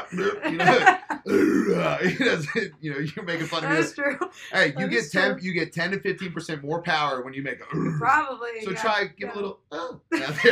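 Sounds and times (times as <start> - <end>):
person growling as if through a heavy lift: 0.0 - 3.8, 7.6 - 8.1
laughter: 0.0 - 7.8, 8.6 - 10.5
speech: 0.1 - 10.5.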